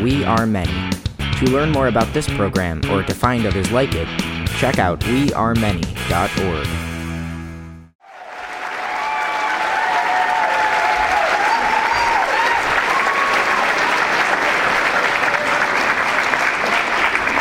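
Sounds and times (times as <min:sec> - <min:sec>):
speech: 0:00.0 - 0:00.8, 0:01.4 - 0:06.9
audience applause: 0:08.0 - 0:17.3
faint voices and whoops: 0:08.1 - 0:14.1.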